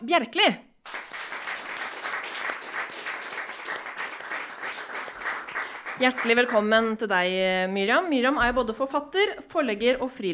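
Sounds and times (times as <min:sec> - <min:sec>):
speech: 0:00.0 - 0:01.0, 0:06.0 - 0:10.3
audience applause: 0:00.9 - 0:06.9.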